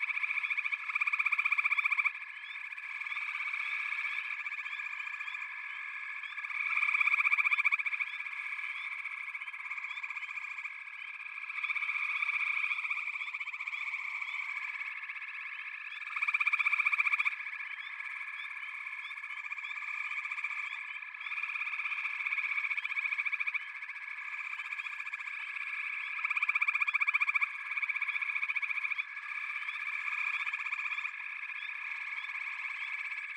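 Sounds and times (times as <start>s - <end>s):
frog chorus trilling: 0.0s - 33.3s.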